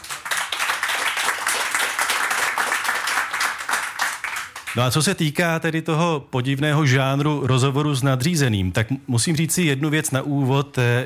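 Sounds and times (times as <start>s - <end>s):
live audience applauding: 0.0s - 4.8s
speech: 4.8s - 11.0s.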